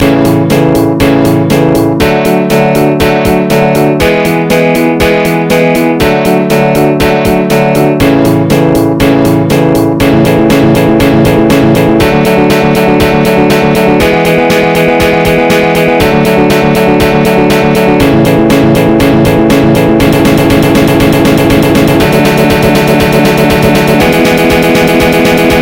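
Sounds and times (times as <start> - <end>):
MIDI test music: 0.0 - 25.5.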